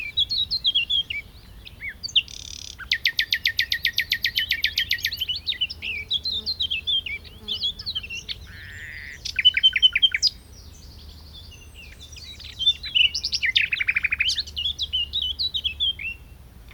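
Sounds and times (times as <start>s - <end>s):
common nightingale singing: 0.0s - 16.7s.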